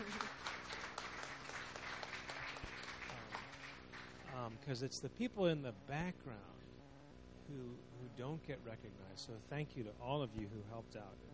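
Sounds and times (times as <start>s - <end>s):
applause: 0.0s - 4.7s
speech: 4.5s - 6.7s, 7.5s - 11.3s.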